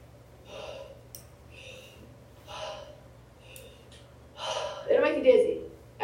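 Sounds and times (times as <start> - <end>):
low constant hum: 0.0 - 6.0
slow even breathing with equal inhales and exhales: 0.4 - 5.0.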